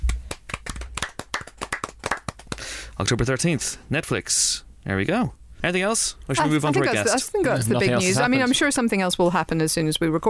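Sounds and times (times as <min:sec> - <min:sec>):
small group clapping: 0:00.0 - 0:02.8
speech: 0:03.0 - 0:10.2.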